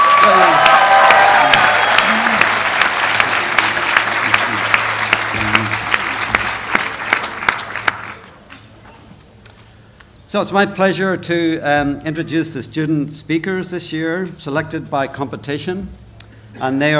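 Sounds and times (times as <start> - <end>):
faint cheers: 0.0 - 2.6
graduation crowd applauding: 0.0 - 8.6
speech: 10.3 - 16.9.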